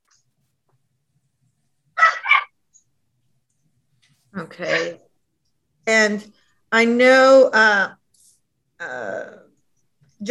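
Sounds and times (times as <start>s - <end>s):
dog barking: 2.0s - 2.6s
speech: 4.5s - 5.0s, 6.0s - 8.0s.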